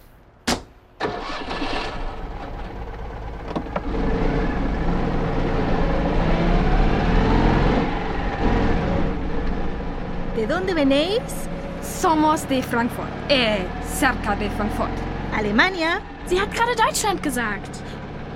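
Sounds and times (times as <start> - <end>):
car driving off: 1.0 - 18.3
speech: 10.4 - 17.9.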